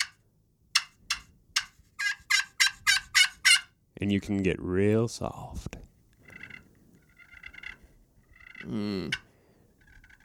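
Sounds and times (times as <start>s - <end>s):
slate turkey call yelps: 0.8s - 3.7s, 6.2s - 10.2s
speech: 4.0s - 5.9s, 8.6s - 9.2s.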